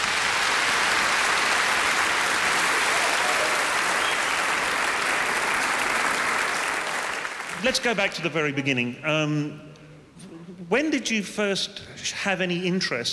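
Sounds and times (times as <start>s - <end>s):
audience applause at the Perth Writers Festival: 0.0s - 8.3s
speech: 7.6s - 9.7s, 10.7s - 13.1s.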